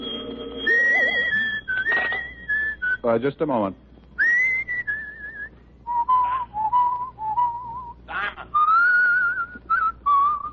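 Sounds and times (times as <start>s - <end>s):
person whistling a tune: 0.6s - 3.0s, 4.2s - 8.0s, 8.6s - 10.5s
speech: 3.0s - 3.8s.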